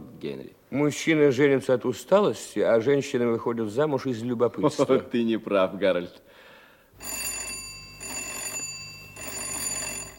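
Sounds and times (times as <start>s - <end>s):
speech: 0.2s - 6.4s, 7.0s - 7.2s
insistent electric doorbell ringing: 7.0s - 10.1s.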